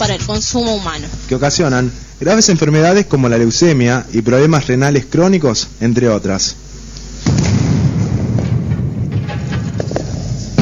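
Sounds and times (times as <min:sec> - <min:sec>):
speech: 0:00.3 - 0:06.6
mountain blasting explosion: 0:07.2 - 0:09.8.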